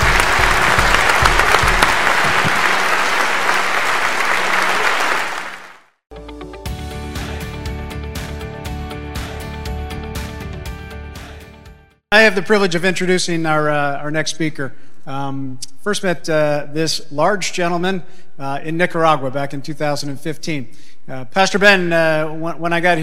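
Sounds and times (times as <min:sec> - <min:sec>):
audience applause: 0:00.0 - 0:05.9
speech: 0:12.2 - 0:23.0.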